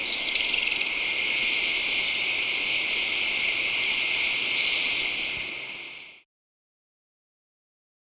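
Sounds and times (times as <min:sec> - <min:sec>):
Many-Striped Canastero calling in Ecuador: 0:00.0 - 0:06.2.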